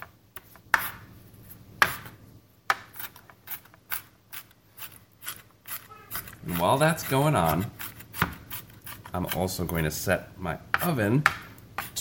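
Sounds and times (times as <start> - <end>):
knife mincing sausage for an orzotto: 1.8 - 9.8, 10.6 - 11.9
speech: 6.5 - 7.8, 9.2 - 11.4.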